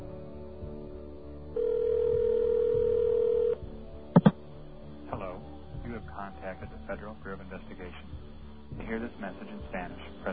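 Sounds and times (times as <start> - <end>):
telephone ringback tone on the line: 1.6 - 3.6
speech: 6.4 - 10.3.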